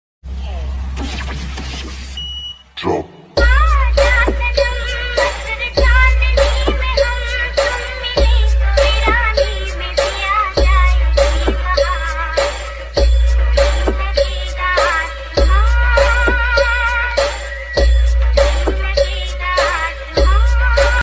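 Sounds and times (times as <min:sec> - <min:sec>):
90s Hindi romantic song ringtone: 0:03.3 - 0:21.0.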